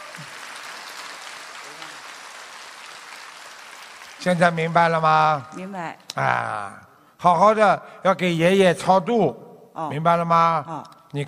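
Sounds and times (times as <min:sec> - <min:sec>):
audience applause: 0:00.0 - 0:05.2
speech: 0:04.2 - 0:11.2.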